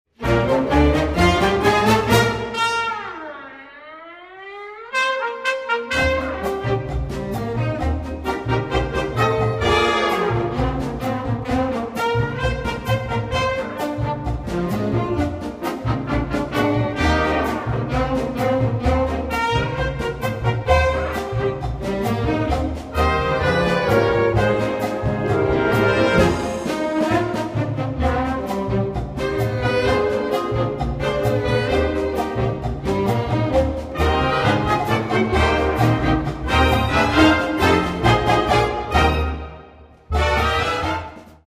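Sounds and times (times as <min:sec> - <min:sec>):
cha-cha music: 0:00.1 - 0:41.4.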